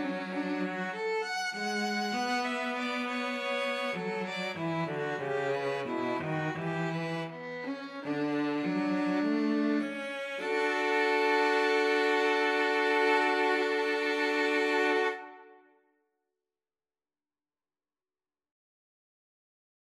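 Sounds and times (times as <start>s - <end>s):
violin and cello duet: 0.0s - 15.6s.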